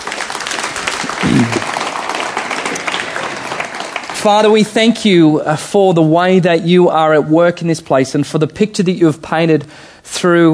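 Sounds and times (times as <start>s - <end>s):
audience applause: 0.0s - 4.7s
voiced murmur from the crowd: 1.0s - 2.0s
speech: 4.2s - 10.5s.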